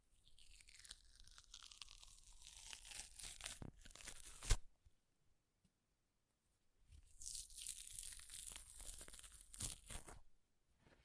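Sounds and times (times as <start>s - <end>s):
paper ripping: 0.3s - 4.7s, 7.2s - 10.2s.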